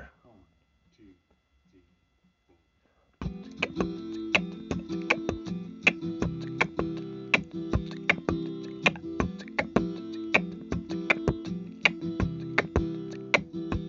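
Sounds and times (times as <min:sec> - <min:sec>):
music beat: 0:03.2 - 0:13.8.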